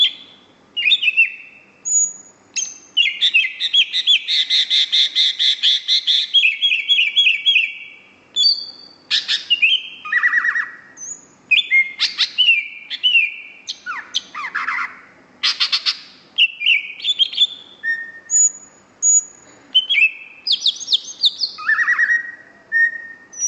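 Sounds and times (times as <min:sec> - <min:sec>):
greater green leafbird singing whistles and rattling trills: 0:00.0 - 0:23.4.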